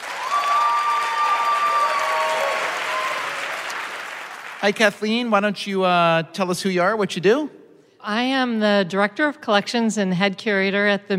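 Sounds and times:
audience applauding to welcome a game show contestant: 0.0s - 5.3s
speech: 4.6s - 11.1s.

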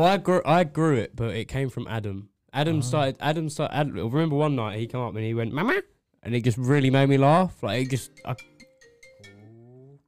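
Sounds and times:
speech: 0.0s - 8.5s
mobile phone ringing: 7.8s - 10.0s.

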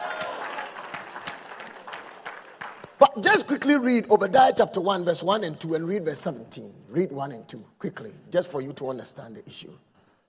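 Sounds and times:
audience clapping: 0.0s - 3.6s
speech: 3.2s - 9.9s.

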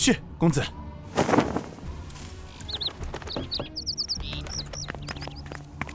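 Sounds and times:
speech: 0.0s - 0.8s
small plump caged bird chirping while feeding: 2.5s - 5.8s.

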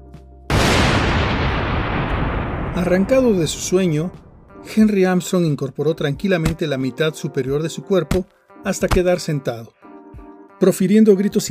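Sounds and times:
thunder crash: 0.5s - 4.9s
speech: 2.8s - 9.8s, 10.6s - 11.4s.

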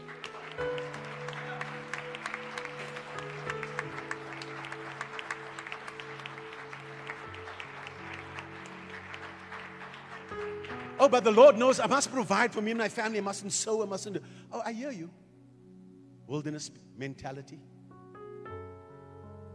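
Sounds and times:
audience clapping hands: 0.0s - 13.3s
speech: 11.0s - 15.2s, 16.3s - 17.7s.

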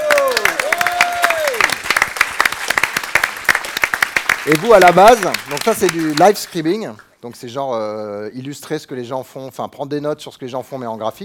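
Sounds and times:
audience applause: 0.0s - 6.6s
speech: 4.4s - 11.2s.

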